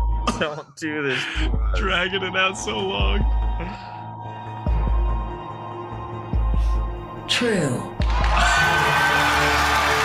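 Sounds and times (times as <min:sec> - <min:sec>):
music: 0:00.0 - 0:10.0
speech: 0:00.4 - 0:03.9, 0:07.4 - 0:08.5
audience cheering on reality show: 0:08.0 - 0:10.0.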